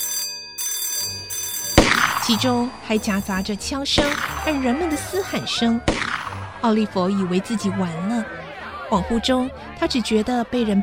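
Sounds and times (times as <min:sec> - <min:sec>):
alarm bell ringing loudly in a house: 0:00.0 - 0:06.4
speech: 0:02.3 - 0:06.0, 0:06.6 - 0:10.8
laughter: 0:02.3 - 0:10.8.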